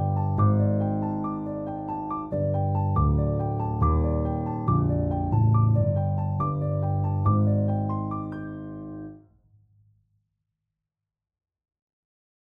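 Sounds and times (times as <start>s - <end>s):
piano: 0.0s - 9.3s.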